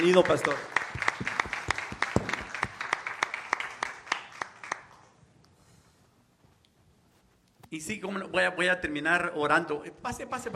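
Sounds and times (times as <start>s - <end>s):
speech: 0.0s - 0.8s, 7.8s - 10.5s
audience applause: 0.0s - 5.1s.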